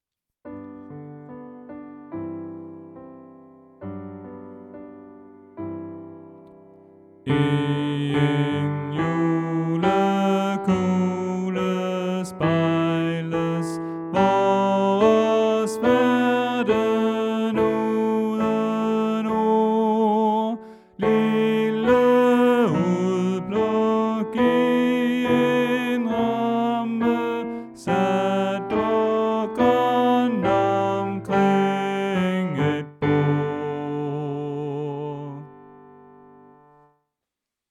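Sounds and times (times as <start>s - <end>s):
tenor singing: 7.3s - 35.7s.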